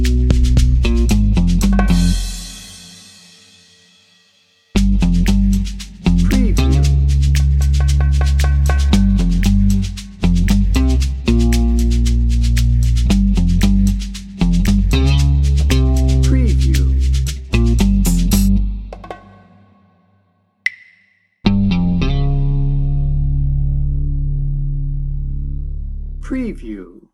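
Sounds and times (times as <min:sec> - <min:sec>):
low guitar: 0:00.0 - 0:02.7, 0:04.8 - 0:18.9, 0:21.4 - 0:26.6
bass: 0:00.0 - 0:02.8, 0:04.7 - 0:19.1, 0:21.4 - 0:27.1
percussion: 0:00.0 - 0:20.0, 0:20.6 - 0:21.3.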